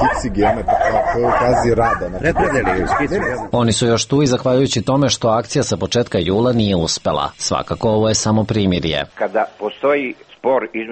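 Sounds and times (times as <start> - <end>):
stray dogs barking and yipping in a garden: 0.0 - 3.6
speech: 0.0 - 10.9.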